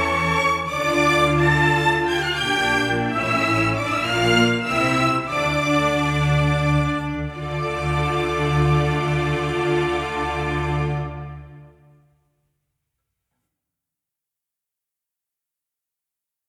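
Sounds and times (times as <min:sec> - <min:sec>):
strings: 0:00.0 - 0:11.8.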